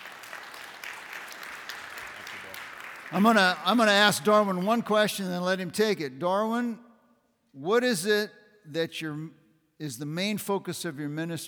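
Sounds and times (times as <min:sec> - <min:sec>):
audience clapping to welcome a mission agency director: 0:00.0 - 0:04.2
speech: 0:03.1 - 0:06.8, 0:07.6 - 0:11.4.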